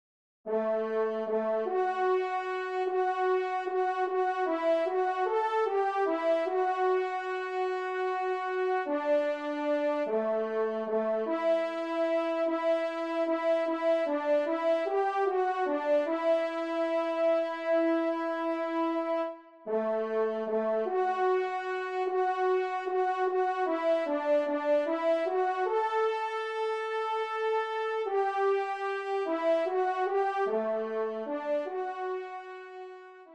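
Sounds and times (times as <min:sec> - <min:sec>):
trumpet playing a liturgical chant: 0:00.5 - 0:33.3.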